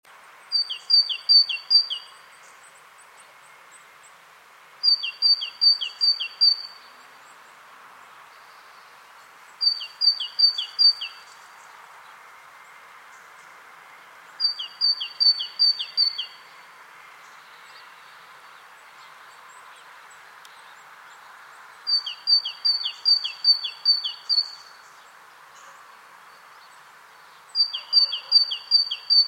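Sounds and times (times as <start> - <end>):
faint background hiss: 0.0 - 29.2
great tit singing: 0.5 - 2.6, 4.8 - 7.5, 9.5 - 11.4, 14.3 - 16.6, 17.3 - 29.2.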